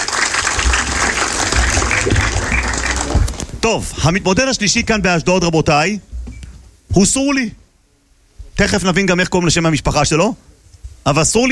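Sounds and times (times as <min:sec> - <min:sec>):
audience applause: 0:00.0 - 0:04.2
speech: 0:03.6 - 0:06.1, 0:06.9 - 0:07.6, 0:08.6 - 0:11.4.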